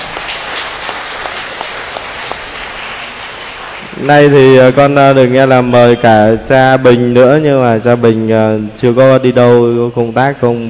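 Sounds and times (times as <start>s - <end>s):
audience applauding: 0.0s - 4.8s
speech: 4.0s - 10.6s.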